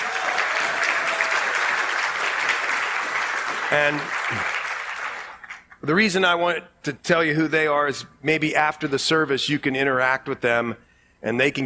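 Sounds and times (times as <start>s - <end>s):
audience applause: 0.0s - 5.6s
speech: 3.7s - 4.6s, 5.8s - 11.6s.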